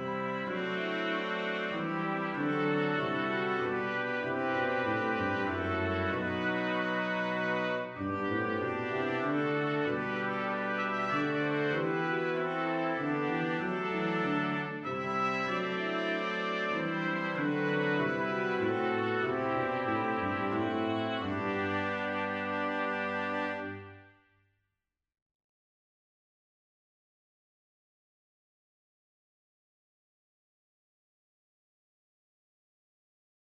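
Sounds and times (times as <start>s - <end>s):
brass quintet: 0.0s - 24.3s.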